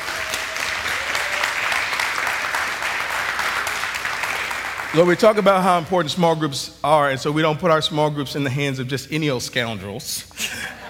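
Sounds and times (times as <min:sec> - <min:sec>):
audience applause welcoming a new small group coordinator onto the staff: 0:00.0 - 0:05.3
speech: 0:04.9 - 0:10.8
laughter: 0:10.4 - 0:10.8.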